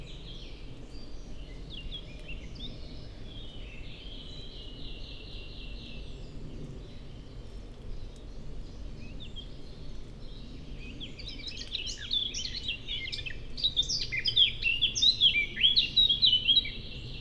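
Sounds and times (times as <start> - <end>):
Eurasian blackcap song in Forêt de Chautagne France: 10.8 - 17.1.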